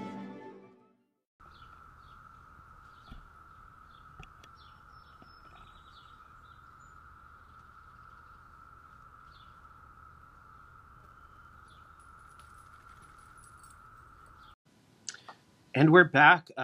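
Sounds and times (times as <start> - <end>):
periodical cicada chorus: 1.4 - 14.5
speech: 15.7 - 16.6.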